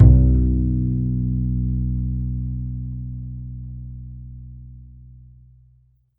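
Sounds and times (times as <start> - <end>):
double bass note B2: 0.0 - 5.6.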